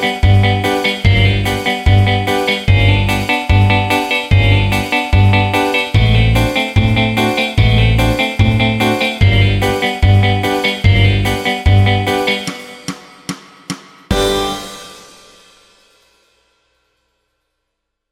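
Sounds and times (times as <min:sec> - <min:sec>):
syrtaki on ukulele: 0:00.0 - 0:12.6.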